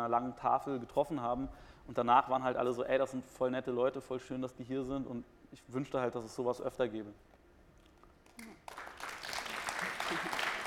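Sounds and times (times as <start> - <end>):
speech: 0.0 - 7.4
audience applause: 8.4 - 10.6.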